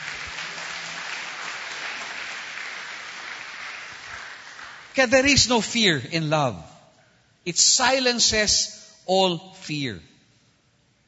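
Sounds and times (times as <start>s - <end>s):
church congregation applauding: 0.0s - 5.5s
speech: 5.0s - 6.7s, 7.4s - 10.1s.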